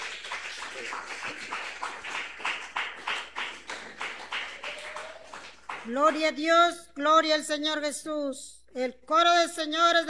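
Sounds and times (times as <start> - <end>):
audience applause: 0.0 - 5.9
speech: 0.8 - 2.6, 5.8 - 10.0.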